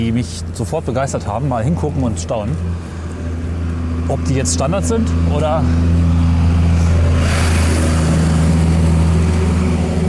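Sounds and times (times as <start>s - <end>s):
speech: 0.0s - 3.1s, 4.1s - 6.2s
loud car driving past: 2.7s - 10.0s.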